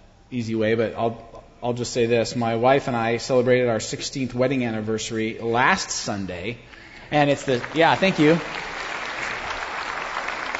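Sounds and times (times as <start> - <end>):
speech: 0.3 - 8.7
audience applause: 7.4 - 10.5.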